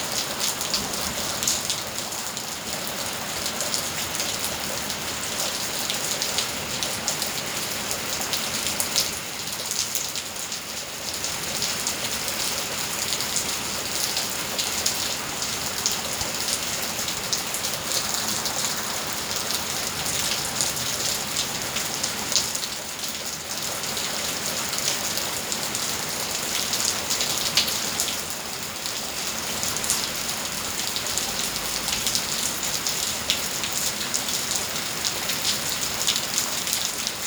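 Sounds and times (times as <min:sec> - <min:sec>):
rain: 0:00.0 - 0:37.2.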